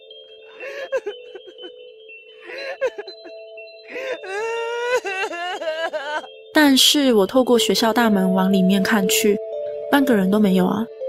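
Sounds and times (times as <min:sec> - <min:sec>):
girl crying and wailing: 0:00.6 - 0:01.7, 0:02.4 - 0:06.4
speech: 0:02.8 - 0:04.6, 0:06.6 - 0:11.0.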